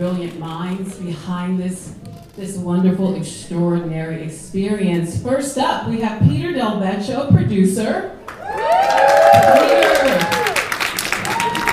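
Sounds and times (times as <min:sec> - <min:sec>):
speech: 0:00.0 - 0:10.3
large crowd applauding: 0:08.2 - 0:11.7
whoops and cheers: 0:08.3 - 0:11.7.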